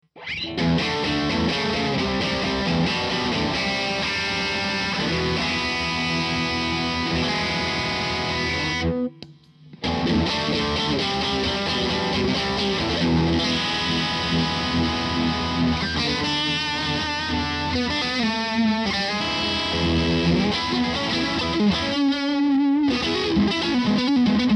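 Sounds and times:
OD Univibe: 0:00.0 - 0:24.5.

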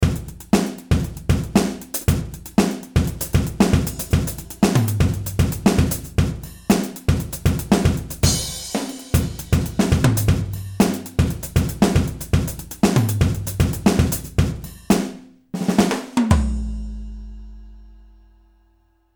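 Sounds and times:
Yamaha funk drum beat: 0:00.0 - 0:17.6.

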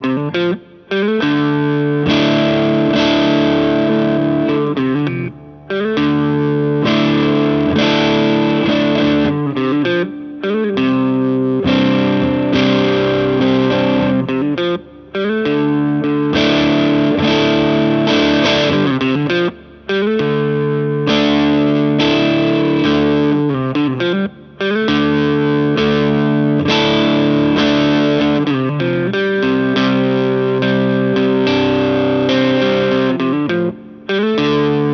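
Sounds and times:
Music Man Mariposa guitar playing: 0:00.0 - 0:34.9.

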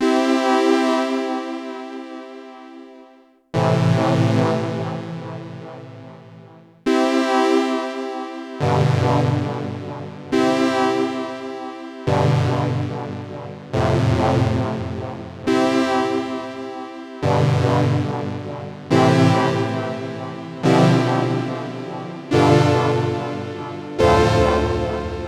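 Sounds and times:
Modal Argon8 synthesizer: 0:00.0 - 0:03.0, 0:03.6 - 0:25.2.

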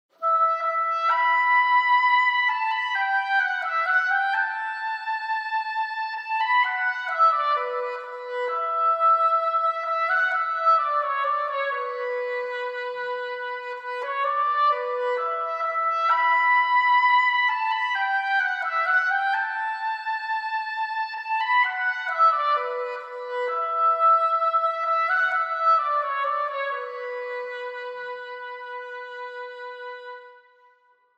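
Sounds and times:
oboe: 0:00.1 - 0:31.0.

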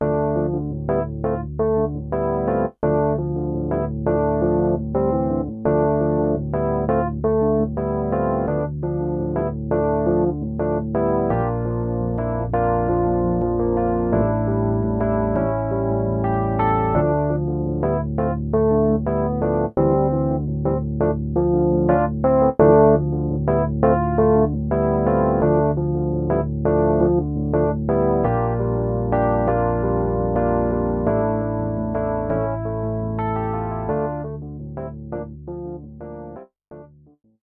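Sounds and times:
electric piano: 0:00.0 - 0:36.9.

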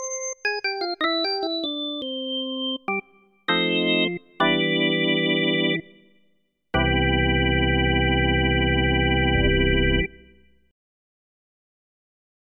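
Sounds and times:
drawbar organ: 0:00.4 - 0:06.0, 0:06.8 - 0:10.5.

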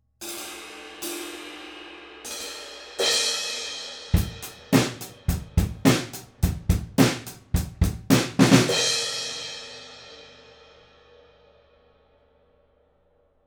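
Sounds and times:
drum kit recorded from the front of the kit: 0:02.3 - 0:10.2.

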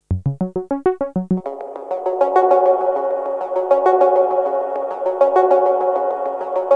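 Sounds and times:
lofi synthesizer: 0:00.0 - 0:06.6.

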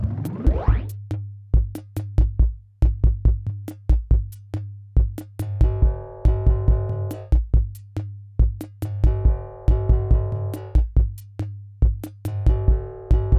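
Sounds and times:
drum machine: 0:00.0 - 0:13.3.

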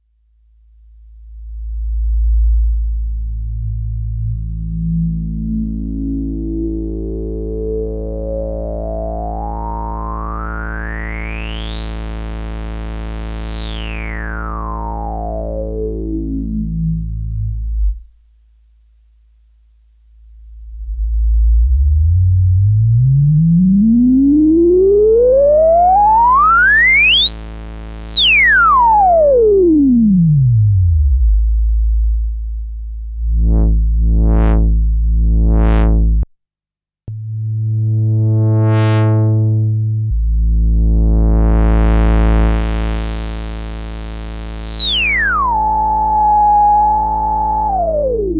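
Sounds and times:
filtered Sub 37 synthesizer: 0:01.3 - 0:18.2, 0:20.2 - 0:36.3, 0:37.1 - 0:48.3.

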